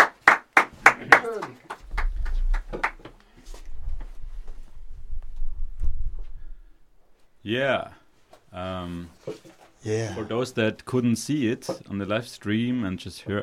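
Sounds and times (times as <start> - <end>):
applause: 0.0 - 3.3
speech: 7.5 - 13.4.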